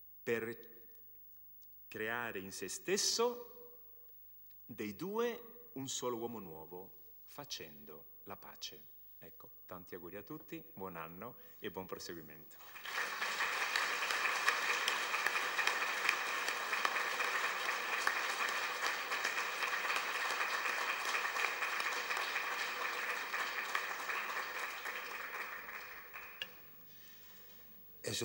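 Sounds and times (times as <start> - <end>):
speech: 0.3 - 0.7, 1.9 - 3.5, 4.7 - 13.0
audience applause following a priest's talk: 12.6 - 26.7.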